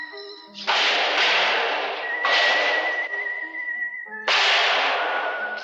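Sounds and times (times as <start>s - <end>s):
kicking a dented metal door panel: 0.7s - 3.0s, 4.3s - 5.5s.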